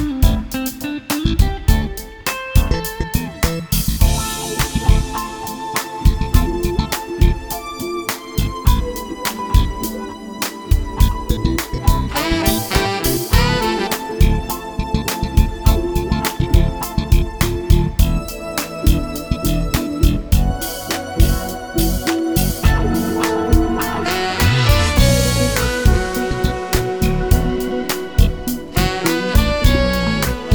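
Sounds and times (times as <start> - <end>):
lead guitar in A minor: 0.0 - 7.8, 11.0 - 30.5
horns in A minor: 12.0 - 15.9, 18.3 - 30.5.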